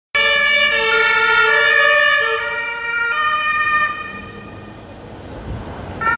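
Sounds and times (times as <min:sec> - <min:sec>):
German police car siren: 0:00.2 - 0:04.9.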